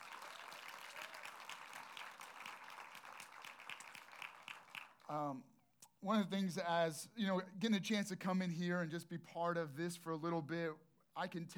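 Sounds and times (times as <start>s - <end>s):
audience round of applause: 0.0s - 5.2s
speech: 5.1s - 11.5s.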